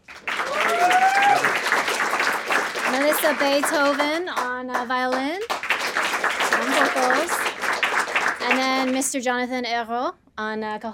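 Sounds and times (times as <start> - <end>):
crowd applauding: 0.0 - 9.1
crowd whoops and cheers: 0.3 - 1.8
speech: 3.2 - 5.6, 6.6 - 7.5, 8.4 - 10.9.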